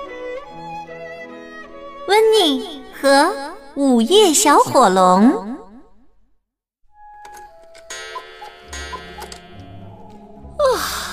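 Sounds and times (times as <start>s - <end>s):
sustained music: 0.0s - 5.6s, 6.9s - 11.1s
speech: 2.1s - 5.6s
clock striking midnight: 7.2s - 10.2s
clock ticking: 7.3s - 9.8s.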